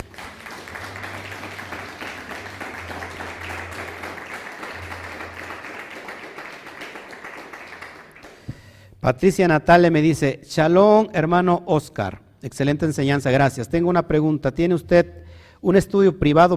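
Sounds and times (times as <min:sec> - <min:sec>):
audience applause: 0:00.0 - 0:08.5
speech: 0:09.0 - 0:16.5.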